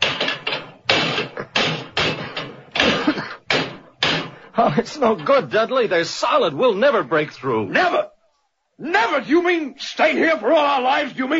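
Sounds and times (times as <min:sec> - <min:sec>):
heavy metal levers striking locked brass doors: 0:00.0 - 0:04.4
speech: 0:04.6 - 0:08.1, 0:08.8 - 0:11.3.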